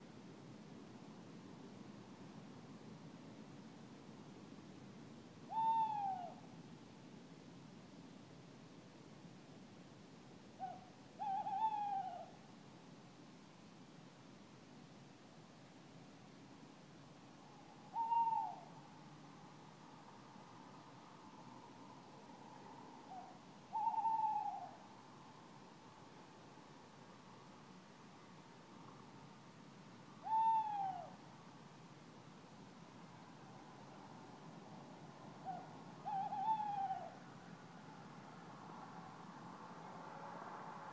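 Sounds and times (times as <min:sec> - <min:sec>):
tawny owl calling: 0:05.5 - 0:06.4, 0:10.6 - 0:12.4, 0:17.9 - 0:18.7, 0:23.1 - 0:24.8, 0:30.2 - 0:31.2, 0:35.4 - 0:37.2.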